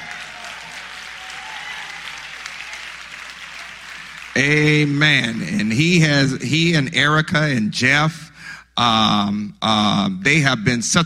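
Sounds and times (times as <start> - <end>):
applause: 0.0 - 6.4
speech: 4.4 - 11.0.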